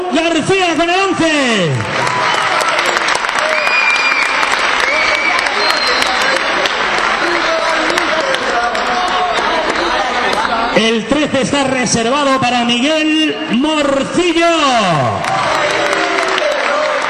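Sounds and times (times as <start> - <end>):
speech: 0.1 - 2.4, 10.8 - 15.4
audience applause: 1.7 - 10.6, 15.1 - 17.0
faint crowd murmur: 4.4 - 10.8.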